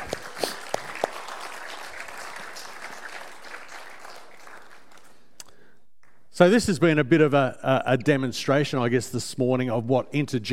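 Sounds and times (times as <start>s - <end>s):
audience clapping: 0.0s - 6.3s
speech: 6.4s - 10.5s.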